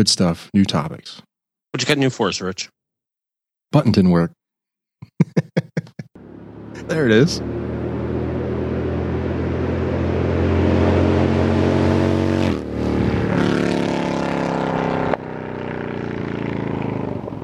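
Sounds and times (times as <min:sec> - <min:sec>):
speech: 0:00.0 - 0:02.8, 0:03.7 - 0:04.4, 0:06.8 - 0:07.6
laughter: 0:05.0 - 0:06.2
Harley-Davidson motorcycle engine on a dealer demo ride: 0:06.2 - 0:17.4.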